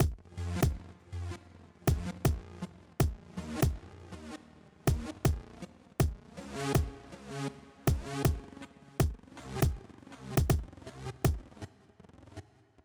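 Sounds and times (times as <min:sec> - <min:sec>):
bass: 0:00.0 - 0:12.6.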